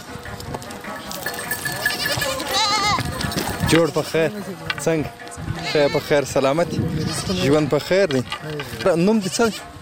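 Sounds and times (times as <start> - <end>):
herded goats and sheep bleating: 1.2 - 3.3, 5.5 - 7.9, 9.2 - 9.8
speech: 3.7 - 9.8.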